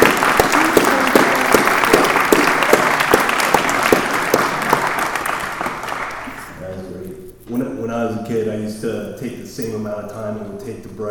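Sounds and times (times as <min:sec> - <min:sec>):
audience applause: 0:00.0 - 0:06.6
speech: 0:08.3 - 0:11.0.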